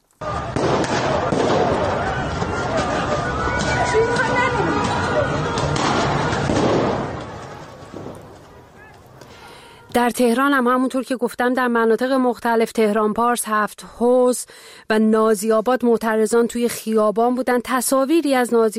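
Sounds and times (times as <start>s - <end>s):
gunshots during street protest: 0.2s - 3.0s, 3.6s - 8.5s
speech: 10.0s - 18.7s.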